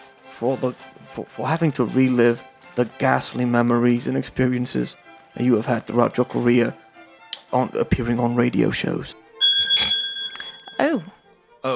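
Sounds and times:
speech: 0:00.4 - 0:06.8, 0:07.5 - 0:09.2, 0:10.8 - 0:11.7
phone ringing: 0:09.4 - 0:11.2.

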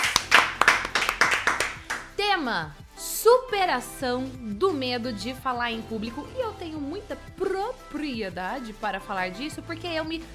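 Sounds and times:
clapping: 0:00.0 - 0:02.1
speech: 0:02.4 - 0:10.3.

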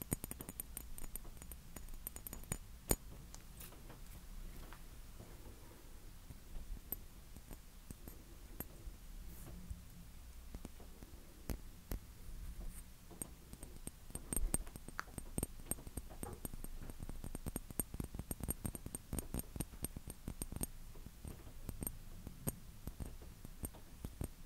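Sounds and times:
tapping and scratching: 0:00.0 - 0:04.2, 0:10.5 - 0:24.4
low steady hum: 0:00.0 - 0:24.4.

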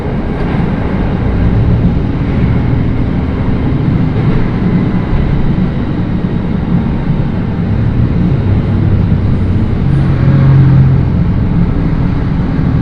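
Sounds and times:
Echigo Tokimeki Railway diesel railcar rumble: 0:00.0 - 0:12.7
low droning tone: 0:00.0 - 0:12.7.

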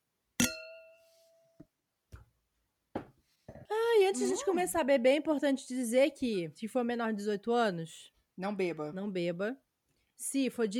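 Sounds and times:
wine glasses clinking in a toast: 0:00.4 - 0:01.1
speech: 0:04.1 - 0:09.6, 0:10.2 - 0:10.7.

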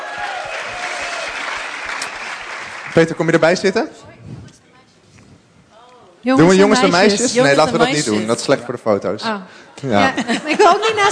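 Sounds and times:
audience applause: 0:00.0 - 0:03.6
speech: 0:03.0 - 0:04.1, 0:06.2 - 0:11.1.

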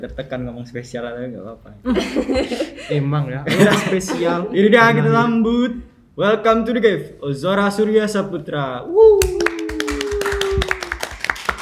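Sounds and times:
speech: 0:00.0 - 0:09.6
laughter: 0:01.9 - 0:05.2
hand clapping greeting a guest on an Indonesian talk show: 0:09.2 - 0:11.6.

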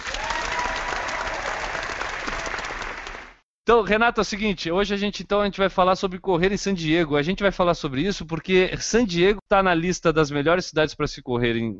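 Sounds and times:
auditorium audience applause: 0:00.0 - 0:03.4
speech: 0:03.7 - 0:11.7.

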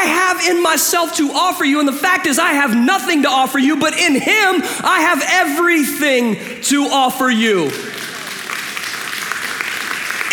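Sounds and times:
speech: 0:00.4 - 0:08.0
audience clapping: 0:06.3 - 0:10.3.

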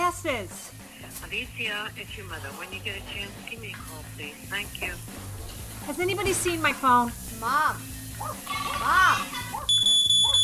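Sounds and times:
speech: 0:00.2 - 0:09.4
smoke alarm sounding a piercing high-pitched tone: 0:09.7 - 0:10.4.

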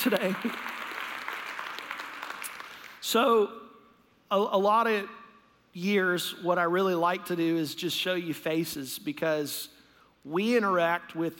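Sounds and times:
speech: 0:00.0 - 0:00.8, 0:03.1 - 0:03.6, 0:04.3 - 0:05.2, 0:05.8 - 0:11.3
crowd clapping: 0:00.0 - 0:03.0.

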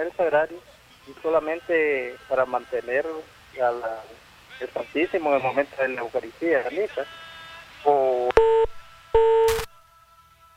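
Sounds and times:
speech: 0:00.0 - 0:07.2
telephone line crackling noise: 0:00.0 - 0:09.8
telephone line tone beeps after a caller disconnects: 0:08.3 - 0:09.7.

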